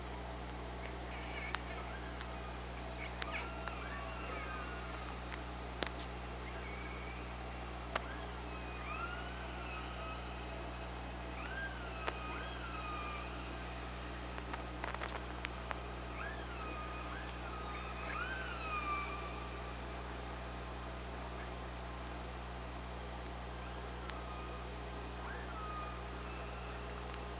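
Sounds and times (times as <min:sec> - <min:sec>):
steady low hum: 0:00.0 - 0:27.3
killer whale tonal calls under water: 0:01.1 - 0:05.3, 0:06.4 - 0:14.3, 0:16.0 - 0:20.2, 0:23.6 - 0:27.1.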